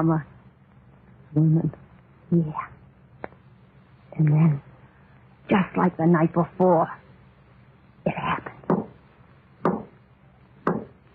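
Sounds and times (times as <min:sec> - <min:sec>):
speech: 0:00.0 - 0:00.3, 0:01.3 - 0:02.7, 0:04.2 - 0:04.7, 0:05.5 - 0:07.0
hum: 0:00.0 - 0:11.1
knocking on a wooden door: 0:09.6 - 0:09.9, 0:10.7 - 0:11.0.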